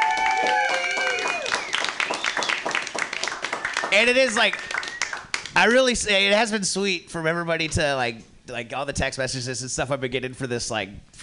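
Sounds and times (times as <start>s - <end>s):
audience applause at an open mic night: 0.0s - 5.6s
speech: 4.0s - 4.8s, 5.6s - 11.2s.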